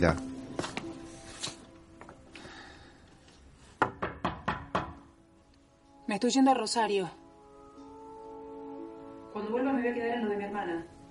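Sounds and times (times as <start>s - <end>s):
speech: 0.0s - 0.3s, 6.1s - 7.2s, 9.4s - 11.0s
knocking on a door: 3.8s - 5.1s.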